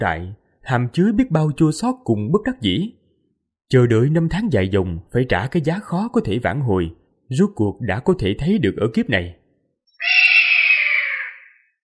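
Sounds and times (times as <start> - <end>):
speech: 0.0 - 3.0, 3.7 - 9.4
creature screeching cry: 10.0 - 11.8.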